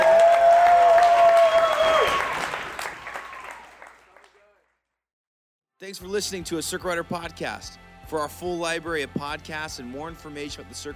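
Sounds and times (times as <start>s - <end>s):
audience applause: 0.0s - 4.6s
speech: 5.9s - 10.9s.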